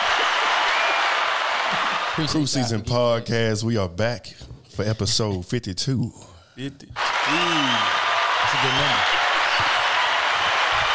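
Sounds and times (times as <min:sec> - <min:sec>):
audience applause: 0:00.0 - 0:02.4, 0:07.0 - 0:10.9
speech: 0:02.2 - 0:09.2.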